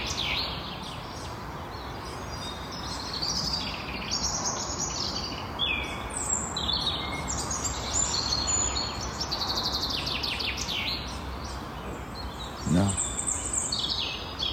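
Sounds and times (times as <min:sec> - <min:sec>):
chaffinch singing at the edge of the Munnichbos near Sint Odiliënberg: 0:00.0 - 0:14.5.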